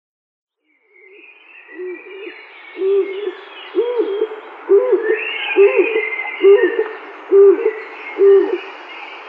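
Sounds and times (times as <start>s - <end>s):
male stock dove giving a display call: 1.8s - 8.7s.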